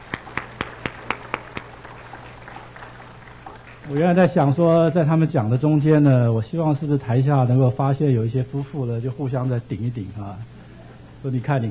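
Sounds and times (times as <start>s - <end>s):
audience clapping: 0.0s - 4.6s
faint low hum: 0.0s - 11.6s
speech: 3.9s - 10.6s, 11.2s - 11.6s.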